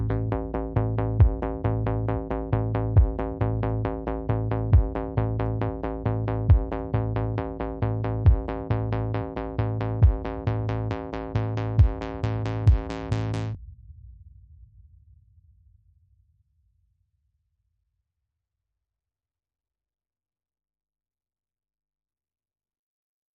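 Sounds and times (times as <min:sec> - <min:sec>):
bass: 0:00.0 - 0:13.6
drums: 0:01.2 - 0:01.6, 0:03.0 - 0:03.3, 0:04.7 - 0:05.0, 0:06.5 - 0:06.9, 0:08.2 - 0:09.4, 0:10.0 - 0:13.6.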